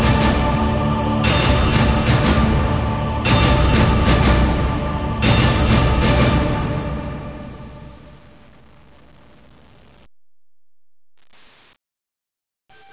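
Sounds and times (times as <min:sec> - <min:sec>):
end song: 0:00.0 - 0:08.3.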